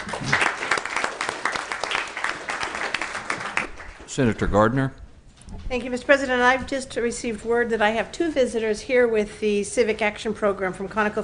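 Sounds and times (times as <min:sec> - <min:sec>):
applause welcoming a visitor to a Senate session: 0:00.0 - 0:04.2
speech: 0:04.2 - 0:05.0, 0:05.7 - 0:11.2.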